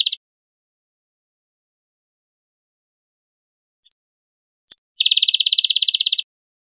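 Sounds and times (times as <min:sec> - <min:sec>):
rufous-winged sparrow chips and trills: 0:05.0 - 0:06.2.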